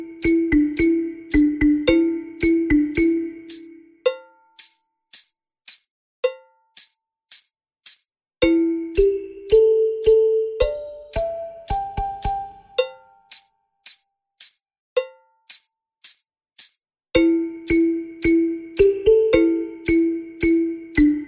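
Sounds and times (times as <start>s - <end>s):
balafon: 0.0s - 4.4s, 8.4s - 13.2s, 17.2s - 21.2s.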